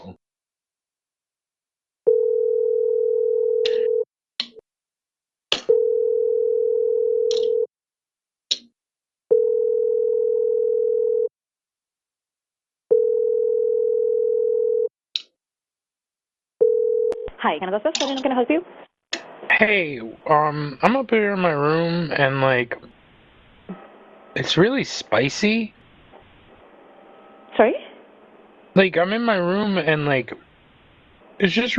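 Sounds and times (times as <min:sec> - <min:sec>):
telephone ringing in a video game: 0:02.1 - 0:04.0, 0:05.7 - 0:07.7, 0:09.3 - 0:11.3, 0:12.9 - 0:14.9, 0:16.6 - 0:17.3
speech: 0:17.5 - 0:18.8, 0:19.6 - 0:22.9, 0:24.4 - 0:25.8, 0:27.6 - 0:27.8, 0:28.8 - 0:30.4, 0:31.4 - 0:31.7.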